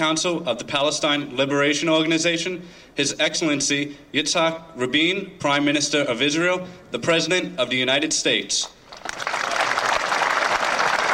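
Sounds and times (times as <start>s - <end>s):
speech: 0.0s - 9.3s
applause in front of the White House at the Oslo Accords signing ceremony: 8.9s - 11.1s.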